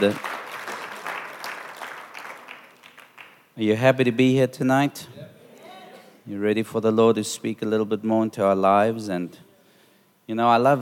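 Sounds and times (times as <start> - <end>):
speech: 0.0 - 0.3, 3.6 - 5.2, 6.3 - 9.5, 10.3 - 10.8
audience clapping: 0.0 - 3.6.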